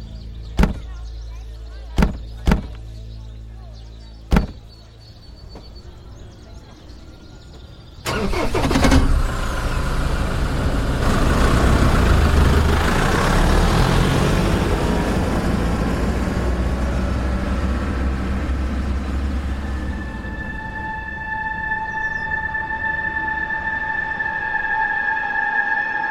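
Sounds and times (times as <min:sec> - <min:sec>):
vehicle engine starting and running as a group drives off: 0:00.0 - 0:01.2, 0:01.9 - 0:03.1, 0:08.0 - 0:26.0
sharp knocks: 0:00.6 - 0:00.9, 0:02.0 - 0:02.8, 0:04.3 - 0:04.6.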